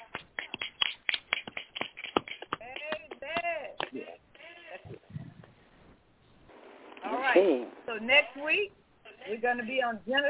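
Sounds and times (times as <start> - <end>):
small group clapping: 0.0 - 4.1
speech: 7.4 - 10.2.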